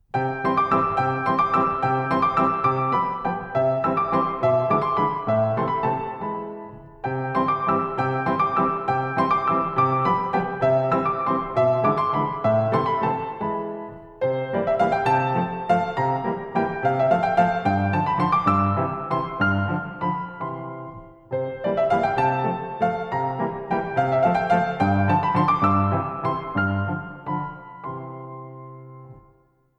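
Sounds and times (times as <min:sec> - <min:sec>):
piano waltz: 0:00.0 - 0:29.7.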